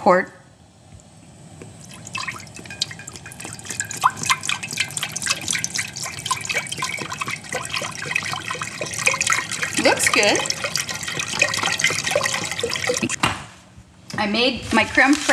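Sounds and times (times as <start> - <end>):
speech: 0.0 - 0.4, 10.2 - 10.7, 14.2 - 15.3
chicken broth pouring into a pot: 1.6 - 13.2.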